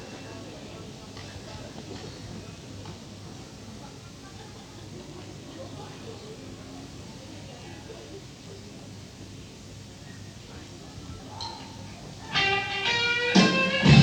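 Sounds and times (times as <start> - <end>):
blues music: 12.3 - 14.0.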